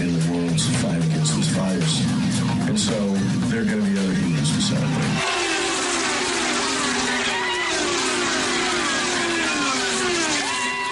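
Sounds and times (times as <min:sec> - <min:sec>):
commentator talking: 0:00.0 - 0:05.1
race cars drafting uphill at Watkins Glen International in New York: 0:04.7 - 0:10.9.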